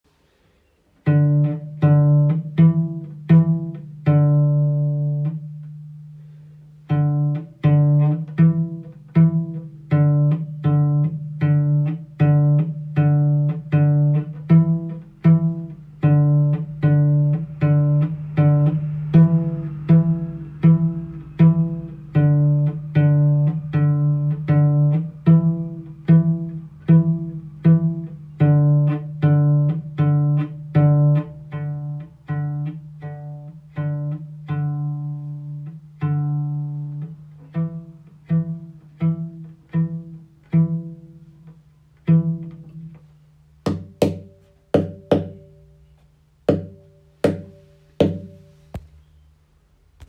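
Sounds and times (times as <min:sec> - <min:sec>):
cello pizzicato: 0:00.0 - 0:49.2.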